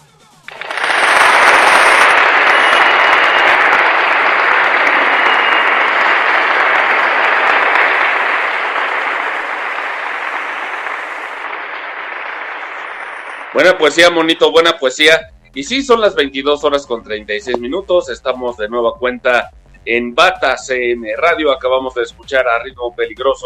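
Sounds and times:
loud dense crowd applause: 0:00.5 - 0:14.4
speech: 0:13.6 - 0:23.4.

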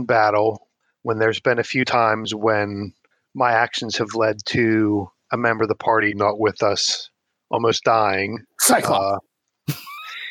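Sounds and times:
speech: 0:00.0 - 0:09.9
sneeze: 0:08.6 - 0:09.0.

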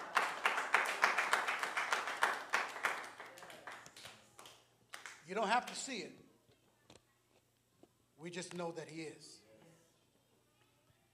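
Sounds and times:
audience clapping hands: 0:00.0 - 0:05.9
speech: 0:05.3 - 0:06.2, 0:08.2 - 0:09.4.

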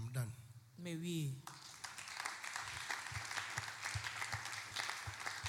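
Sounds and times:
speech: 0:00.1 - 0:01.6
audience clapping: 0:01.4 - 0:05.4.

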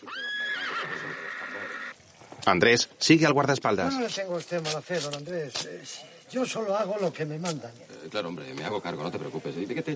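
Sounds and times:
horse whinnying: 0:00.0 - 0:02.0
speech: 0:02.4 - 0:09.9.

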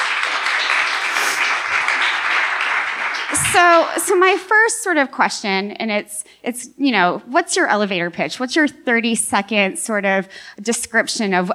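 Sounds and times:
crowd applauding: 0:00.0 - 0:04.1
speech: 0:03.6 - 0:11.5.

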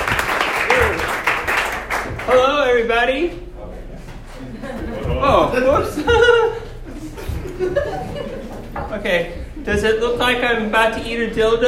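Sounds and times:
audience applause: 0:00.0 - 0:02.4
faint cheers: 0:00.6 - 0:01.2
speech: 0:02.3 - 0:03.5, 0:05.2 - 0:06.6, 0:07.6 - 0:11.6
laughter: 0:04.3 - 0:10.2.

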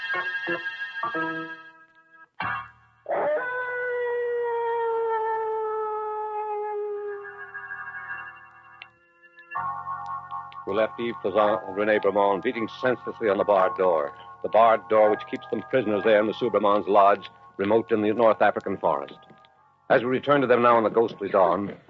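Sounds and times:
speech: 0:00.2 - 0:01.6, 0:10.7 - 0:19.3, 0:19.9 - 0:21.8
dogs howling: 0:03.1 - 0:07.6.

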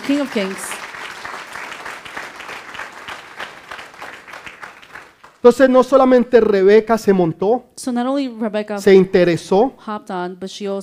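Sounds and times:
loud audience applause: 0:00.0 - 0:05.4
speech: 0:00.1 - 0:00.7, 0:05.4 - 0:10.8.

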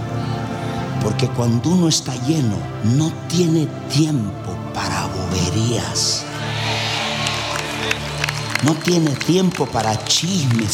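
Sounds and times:
speech: 0:01.0 - 0:06.5, 0:07.8 - 0:10.7
audience applause and cheering: 0:06.3 - 0:10.7.

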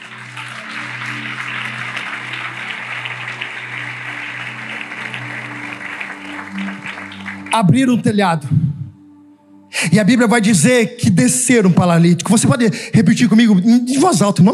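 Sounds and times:
audience applause: 0:00.0 - 0:07.8
low sustained keyboard chords: 0:00.0 - 0:12.9
speech: 0:07.5 - 0:08.7, 0:09.8 - 0:14.5.

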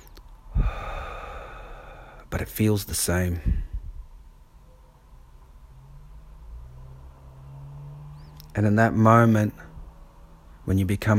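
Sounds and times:
sharp noisy breath drawn through the nose: 0:00.5 - 0:02.2
speech: 0:02.4 - 0:03.6, 0:08.6 - 0:09.7, 0:10.6 - 0:11.1.

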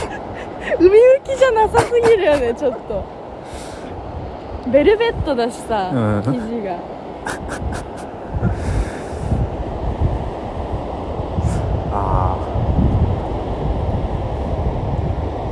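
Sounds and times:
sea waves: 0:00.0 - 0:15.5
strong wind on a beach: 0:00.0 - 0:15.5
speech: 0:00.7 - 0:03.2, 0:04.6 - 0:08.0.

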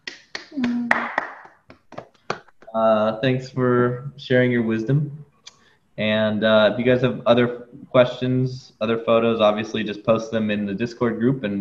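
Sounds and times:
golf clap: 0:00.0 - 0:02.7
speech: 0:02.8 - 0:05.2, 0:06.0 - 0:11.5.

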